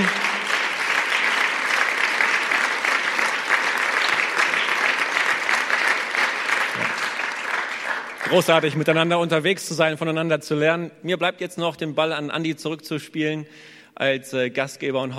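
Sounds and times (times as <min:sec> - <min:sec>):
applause: 0:00.0 - 0:09.6
speech: 0:08.3 - 0:15.1.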